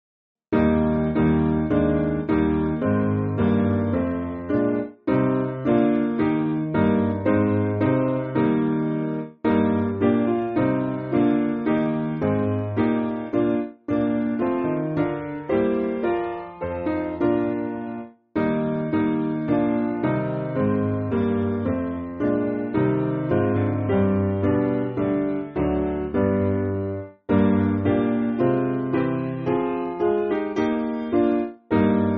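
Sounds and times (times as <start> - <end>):
piano backing music for churches: 0.5 - 32.1.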